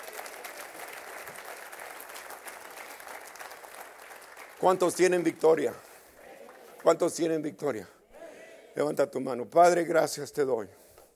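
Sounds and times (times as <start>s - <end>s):
audience applause: 0.0s - 5.4s
speech: 4.6s - 5.9s, 6.8s - 8.0s, 8.8s - 10.8s.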